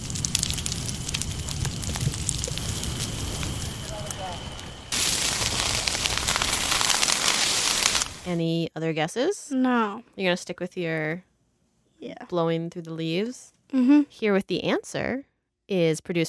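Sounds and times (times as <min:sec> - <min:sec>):
trees burning in a wild forest fire in California: 0:00.0 - 0:08.4
speech: 0:08.3 - 0:11.3, 0:12.0 - 0:16.2.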